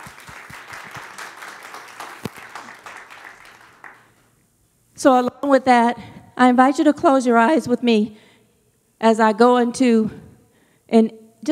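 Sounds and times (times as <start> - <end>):
audience clapping: 0.0 - 4.3
speech: 5.0 - 8.2, 9.0 - 10.2, 10.9 - 11.5.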